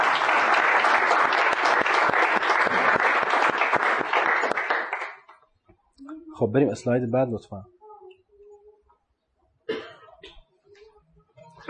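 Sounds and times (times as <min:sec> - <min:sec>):
audience applause: 0:00.0 - 0:05.3
speech: 0:06.4 - 0:07.8.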